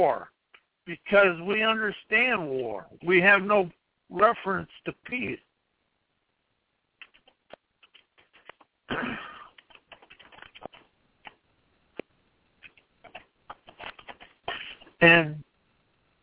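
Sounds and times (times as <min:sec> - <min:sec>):
speech: 0:00.0 - 0:05.5, 0:08.9 - 0:09.3, 0:15.0 - 0:15.5
quiet clicks and taps of someone writing notes: 0:07.0 - 0:08.7, 0:09.5 - 0:11.4
scratchy rustle: 0:07.0 - 0:08.7, 0:09.5 - 0:10.9, 0:12.7 - 0:15.0.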